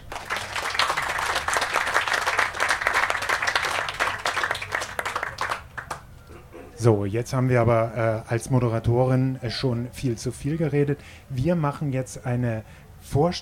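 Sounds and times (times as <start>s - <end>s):
audience applause: 0.0s - 6.1s
speech: 6.8s - 13.4s.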